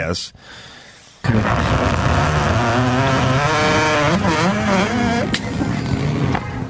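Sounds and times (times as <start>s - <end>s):
tinny fart: 1.3s - 6.4s.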